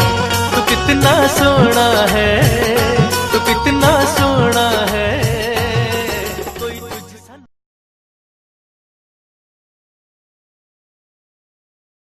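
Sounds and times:
bhakti song ringtone: 0.0 - 7.4.

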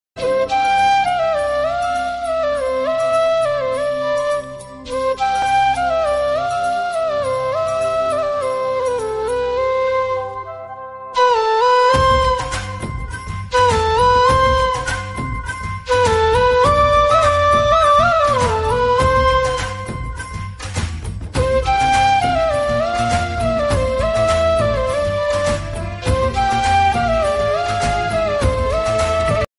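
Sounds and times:
flute ringtone: 0.2 - 20.7, 21.3 - 29.5.

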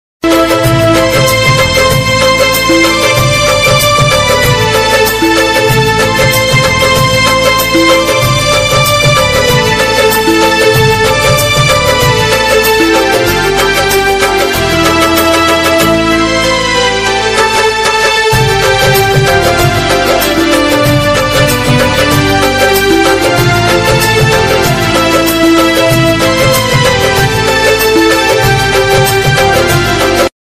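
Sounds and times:
patriotic instrumental ringtone: 0.2 - 30.3.

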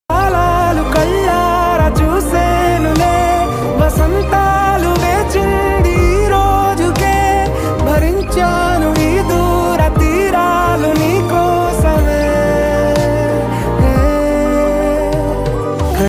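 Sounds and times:
Telugu songs: 0.1 - 16.0.

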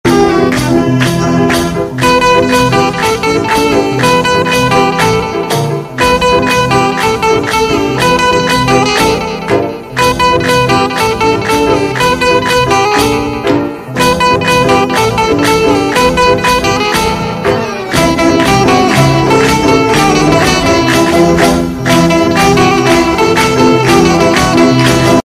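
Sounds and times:
banjo animal song ringtone: 0.1 - 25.2.

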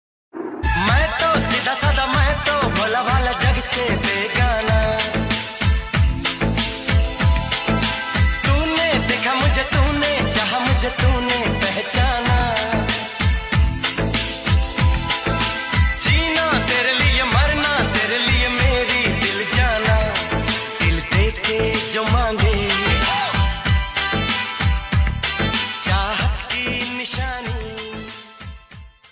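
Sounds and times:
romantic song: 0.4 - 29.1.

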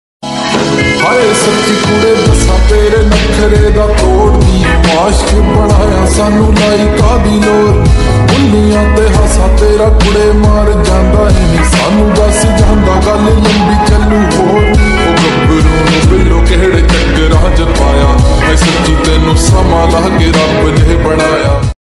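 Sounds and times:
slowed reverb lofi remix ringtone music: 0.2 - 21.7.

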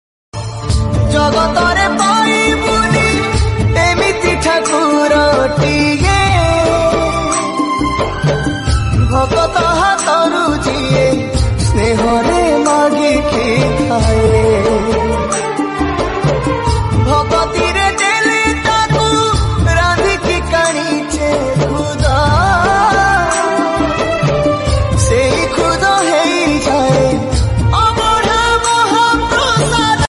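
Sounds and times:
bhajan ringtone: 0.8 - 30.0.

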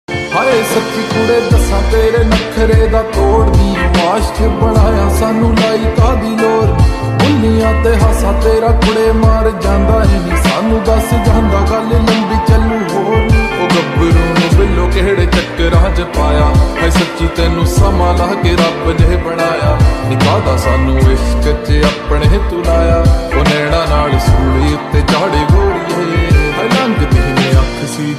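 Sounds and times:
slowed Punjabi lofi song with reverb ringtone: 0.1 - 28.1.

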